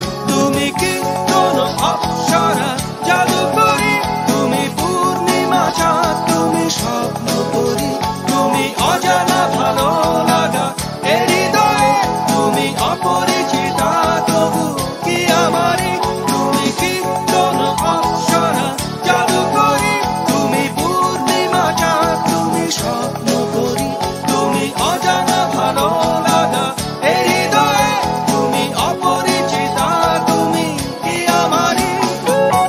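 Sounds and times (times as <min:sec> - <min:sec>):
Bangla song: 0:00.0 - 0:32.6.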